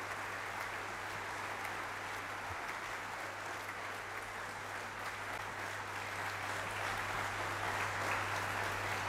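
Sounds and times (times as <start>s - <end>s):
rhythmic applause from a concert audience: 0.0s - 9.0s.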